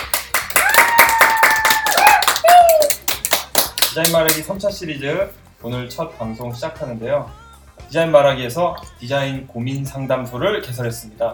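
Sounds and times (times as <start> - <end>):
people clapping: 0.0 - 4.5
vocal whoops: 0.5 - 3.2
speech: 4.0 - 11.3.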